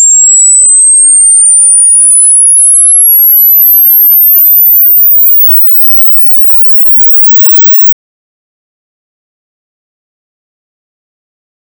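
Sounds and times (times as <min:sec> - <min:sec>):
frequency sweep tone: 0:00.0 - 0:07.8.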